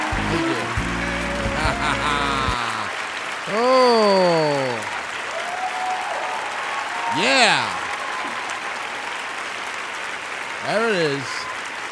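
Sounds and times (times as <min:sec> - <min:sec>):
crowd applause welcome: 0:00.0 - 0:11.9
laughter: 0:00.2 - 0:04.8
speech: 0:00.3 - 0:00.7, 0:03.5 - 0:04.3.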